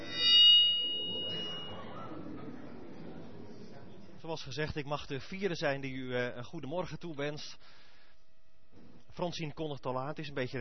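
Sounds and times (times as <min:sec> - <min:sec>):
bell ringing: 0:00.0 - 0:02.3
speech: 0:04.3 - 0:07.8, 0:09.2 - 0:10.6.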